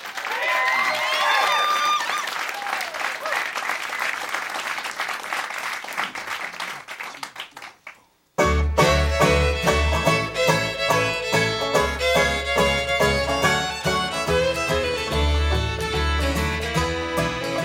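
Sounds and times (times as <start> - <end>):
audience applauding at a WFPK live lunch session: 0.0 - 8.1
string band playing: 8.4 - 17.6.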